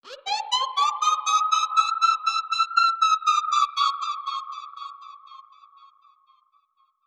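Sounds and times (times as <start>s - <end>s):
alarm siren with modulation processing: 0.1s - 3.9s.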